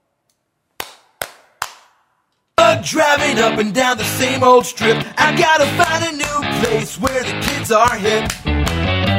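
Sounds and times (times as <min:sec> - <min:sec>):
handclaps layered onto background vocal tracks in a song mix: 0:00.8 - 0:02.0, 0:05.7 - 0:09.1
speech: 0:02.8 - 0:08.4.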